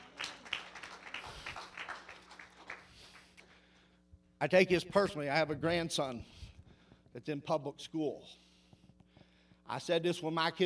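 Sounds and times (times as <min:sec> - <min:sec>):
audience clapping: 0:00.0 - 0:03.5
speech: 0:04.4 - 0:06.4, 0:07.1 - 0:08.4, 0:09.7 - 0:10.6.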